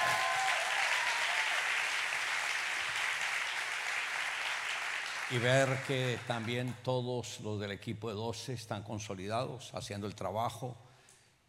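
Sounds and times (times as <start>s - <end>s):
crowd applause: 0.0s - 6.8s
speech: 5.3s - 10.9s.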